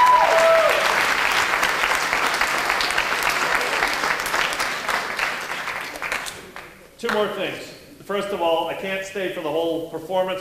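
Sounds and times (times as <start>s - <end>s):
audience cheering: 0.0s - 5.2s
round of applause: 0.0s - 6.8s
speech: 7.1s - 10.3s.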